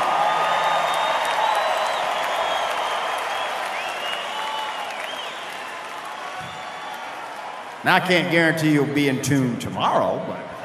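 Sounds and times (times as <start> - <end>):
audience round of applause: 0.0 - 8.5
speech: 7.8 - 10.5.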